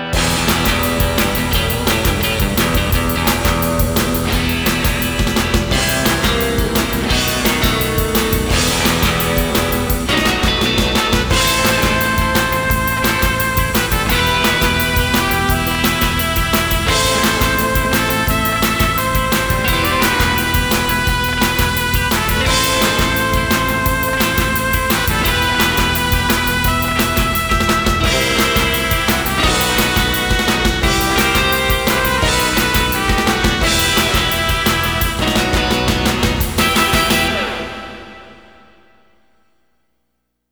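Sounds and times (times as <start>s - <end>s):
surf: 0.2s - 38.7s.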